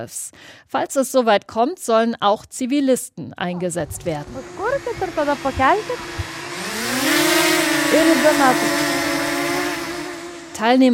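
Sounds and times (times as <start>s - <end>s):
speech: 0.0s - 6.3s, 7.9s - 8.9s, 10.6s - 10.9s
drone buzzing in flight: 3.8s - 10.9s.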